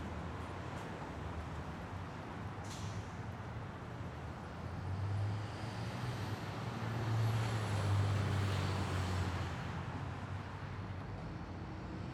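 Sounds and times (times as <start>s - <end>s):
traffic ambience: 0.0s - 12.1s.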